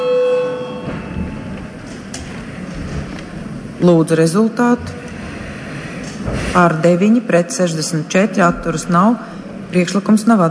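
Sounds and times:
parliament chamber bell ringing to call a vote: 0.0 - 1.6
speech: 3.8 - 5.0, 6.5 - 10.4.

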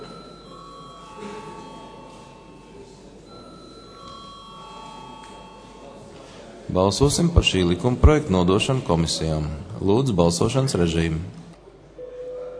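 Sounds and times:
parliament bell ringing for a vote: 0.0 - 6.0
speech: 6.7 - 11.4.

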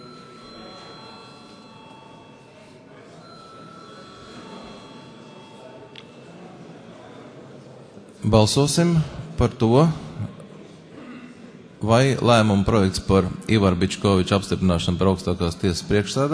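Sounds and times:
parliament electric voting bell ringing: 0.0 - 2.6, 3.2 - 6.0
low murmur of noise: 0.0 - 16.3
speech: 8.2 - 10.0, 11.9 - 16.3.

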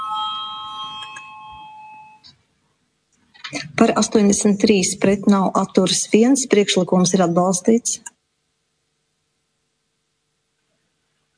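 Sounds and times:
multi-tone electronic bell calling a vote in parliament: 0.0 - 2.3
speech: 3.5 - 8.1.

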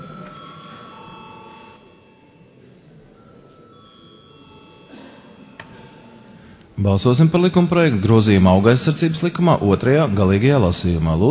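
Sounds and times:
parliament chamber bell ringing before vote: 0.0 - 2.4, 3.2 - 6.3
speech: 6.8 - 11.2.

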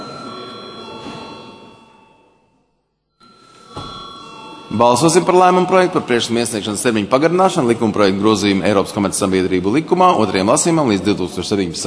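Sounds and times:
parliament chamber bell ringing before a vote: 0.0 - 7.0
speech: 4.7 - 11.8.

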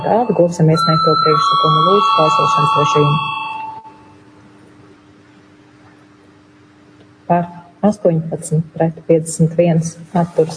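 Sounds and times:
speech: 0.0 - 3.4, 7.3 - 10.5
parliament voting electronic bell tone: 0.0 - 4.2
low hum: 0.0 - 10.5.

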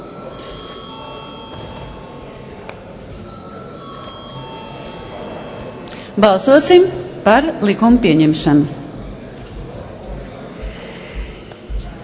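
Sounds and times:
parliament voting bell ringing: 0.0 - 9.3
faint murmur of voices: 0.0 - 12.0
speech: 6.2 - 8.8.

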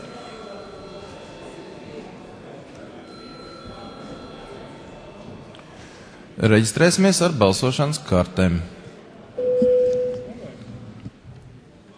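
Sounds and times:
speech: 6.4 - 8.8
parliament registration electric bell ringing: 9.4 - 10.3.

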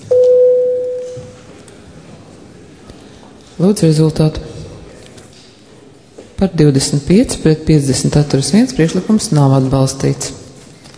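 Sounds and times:
parliament voting bell steady electronic tone: 0.0 - 1.4
speech: 3.6 - 4.5, 6.4 - 10.4.

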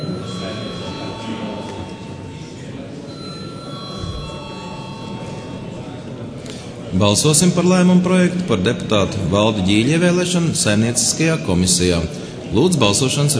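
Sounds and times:
parliament chamber bell ringing: 0.0 - 6.2
speech: 7.0 - 13.3.

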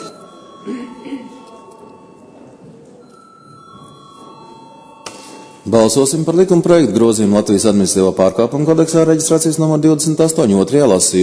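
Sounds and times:
electric bell ringing in the Latvian parliament to call a vote: 0.0 - 6.1
speech: 0.6 - 1.4, 5.7 - 11.2.

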